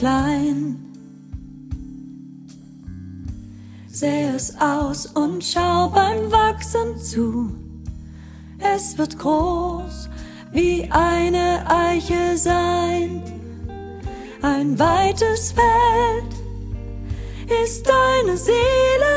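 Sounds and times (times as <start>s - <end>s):
soprano singing solo: 0.0s - 1.0s, 3.9s - 7.7s, 8.6s - 19.1s.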